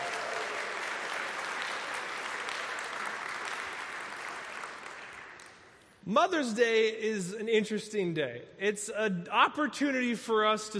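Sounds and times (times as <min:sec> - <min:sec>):
round of applause from a large crowd: 0:00.0 - 0:05.7
speech: 0:06.1 - 0:10.7.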